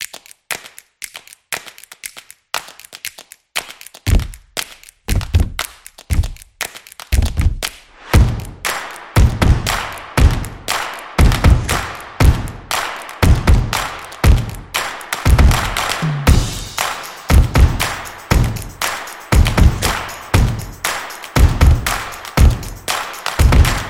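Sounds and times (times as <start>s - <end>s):
drum stomp: 4.1s - 4.4s, 5.1s - 6.4s, 7.1s - 8.6s, 9.2s - 18.7s, 19.3s - 20.7s, 21.4s - 22.6s, 23.4s - 23.8s.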